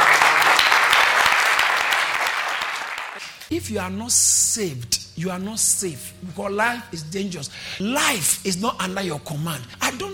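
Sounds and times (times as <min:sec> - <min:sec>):
audience clapping: 0:00.0 - 0:03.5
speech: 0:03.5 - 0:10.1.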